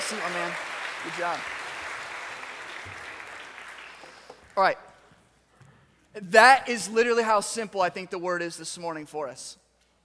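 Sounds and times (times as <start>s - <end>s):
crowd applause: 0.0s - 4.6s
speech: 0.1s - 1.7s, 4.6s - 4.9s, 6.1s - 9.6s.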